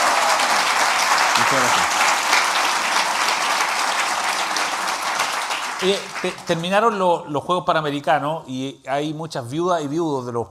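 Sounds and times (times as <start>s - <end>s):
audience applause: 0.0s - 6.8s
speech: 1.5s - 2.1s, 5.8s - 10.4s.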